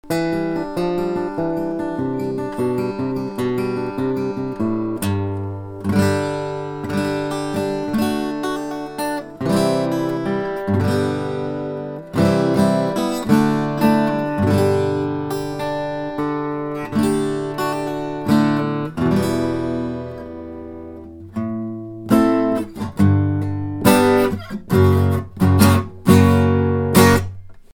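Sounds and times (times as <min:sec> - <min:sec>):
western acoustic guitar recording: 0:00.0 - 0:27.7.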